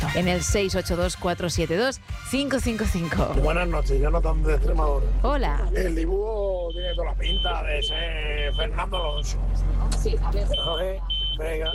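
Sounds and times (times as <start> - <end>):
speech: 0.1 - 11.7
alarm beeping: 6.6 - 9.4, 10.4 - 11.7.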